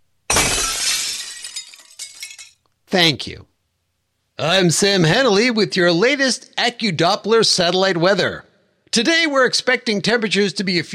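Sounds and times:
falling glass shards clinking: 0.3 - 2.6
glass shattering: 0.3 - 2.6
speech: 2.9 - 3.5, 4.4 - 10.9.

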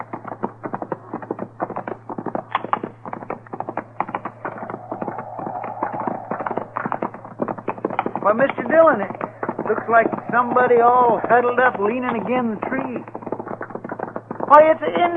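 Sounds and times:
constant low hum: 0.0 - 15.1
horse hooves clip-clopping as riders move on horseback: 0.0 - 15.1
speech: 8.3 - 13.2, 14.5 - 15.1.

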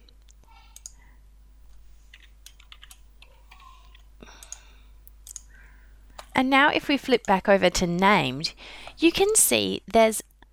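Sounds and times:
typing on a computer keyboard: 0.7 - 1.1, 1.7 - 6.4
speech: 6.4 - 10.3.

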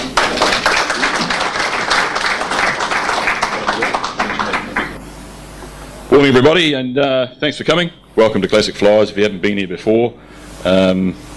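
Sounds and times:
audience applauding at the Classic Flyers museum forum meet: 0.0 - 5.0
speech: 6.1 - 11.3.

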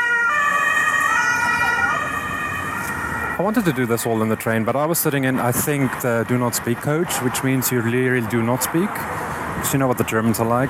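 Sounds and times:
emergency vehicle siren passing: 0.0 - 5.0
low rumble of road traffic: 0.0 - 10.6
speech: 3.4 - 10.6.

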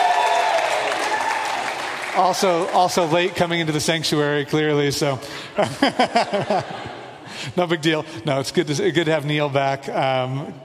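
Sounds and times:
church congregation clapping: 0.0 - 3.8
speech: 2.2 - 10.6
laughter: 5.5 - 7.8.

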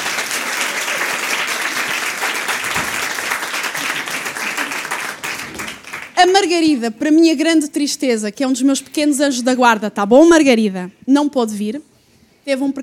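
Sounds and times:
crowd applauding: 0.0 - 6.2
speech: 6.2 - 12.8.

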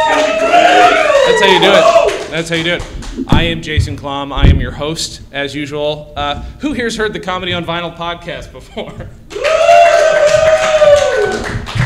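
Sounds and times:
live audience clapping and cheering: 0.0 - 3.6, 9.3 - 11.8
speech: 1.3 - 9.2.

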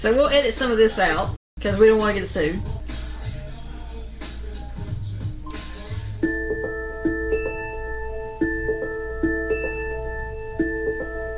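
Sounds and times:
speech: 0.0 - 2.9
smartphone alarm ringtone: 6.2 - 11.3.

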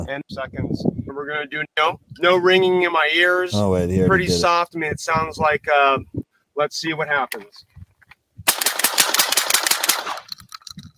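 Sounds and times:
speech: 0.0 - 7.7
long rapid burst of gunfire through a silencer: 8.5 - 10.3.

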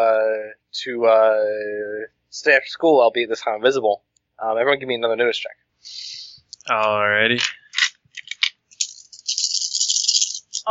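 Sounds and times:
speech: 0.0 - 7.6
three dice clattering onto a hard surface: 7.4 - 10.7.

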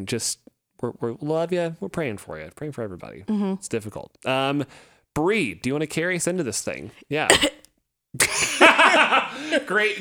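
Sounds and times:
speech: 0.0 - 9.9
person coughing: 7.3 - 7.6.

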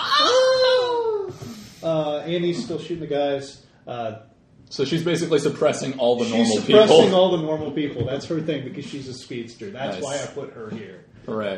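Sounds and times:
voice imitating the Wilhelm scream: 0.0 - 1.5
speech: 2.3 - 11.5.

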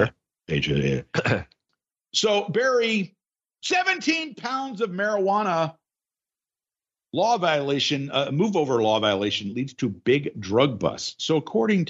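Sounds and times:
speech: 0.0 - 5.8, 7.1 - 11.8
throat clearing: 1.1 - 1.6.

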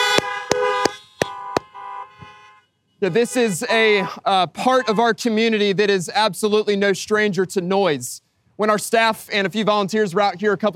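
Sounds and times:
car horns honking: 0.0 - 5.2
speech: 3.0 - 10.7.

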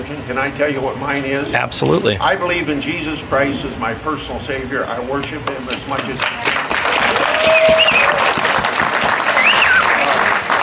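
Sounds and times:
speech: 0.1 - 6.7
audience applause: 6.0 - 10.6.

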